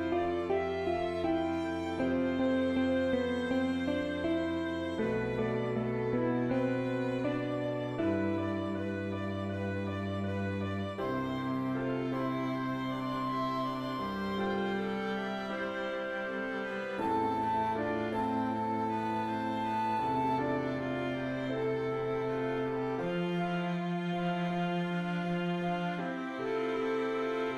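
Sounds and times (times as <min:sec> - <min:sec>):
classical backing track with solo: 0:00.0 - 0:27.5.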